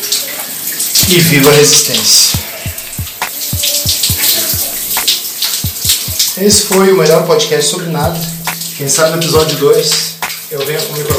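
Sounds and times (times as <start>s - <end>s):
shower water running: 0.0s - 11.1s
speech: 1.1s - 2.5s, 6.4s - 11.1s.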